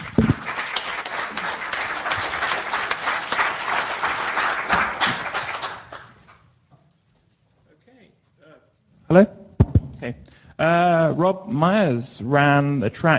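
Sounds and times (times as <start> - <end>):
audience applause: 0.0 - 6.2
speech: 9.1 - 9.3, 10.1 - 13.1.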